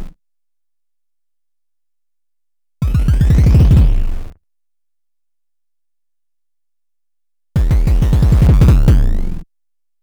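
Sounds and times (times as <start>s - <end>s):
bass drum rhythms: 2.8s - 4.0s, 7.6s - 9.2s.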